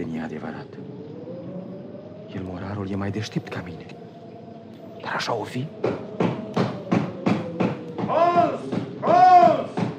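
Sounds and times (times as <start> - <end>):
speech: 0.0 - 0.9, 2.3 - 4.0, 5.0 - 6.4
knocking on a door: 5.8 - 9.9
person shouting: 8.1 - 9.7.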